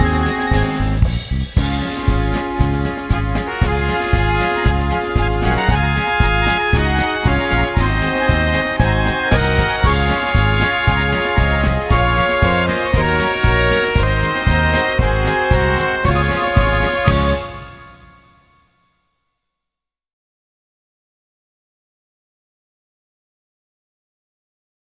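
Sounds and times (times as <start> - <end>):
march music: 0.0 - 18.5.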